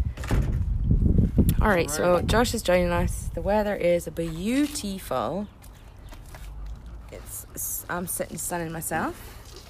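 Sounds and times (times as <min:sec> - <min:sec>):
door slamming shut: 0:00.2 - 0:00.6
speech: 0:01.6 - 0:05.6, 0:07.9 - 0:09.4.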